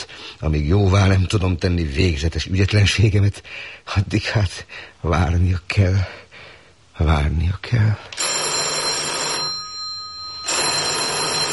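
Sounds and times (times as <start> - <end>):
speech: 0.4 - 6.2, 7.0 - 8.2
telephone bell ringing: 8.2 - 11.5.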